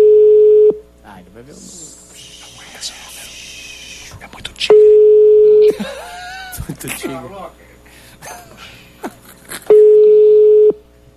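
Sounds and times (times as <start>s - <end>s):
steady low electronic phone ringback tone: 0.0s - 0.8s, 4.8s - 5.6s, 9.7s - 10.8s
laughter: 5.6s - 7.3s, 8.2s - 9.7s
speech: 6.8s - 7.7s.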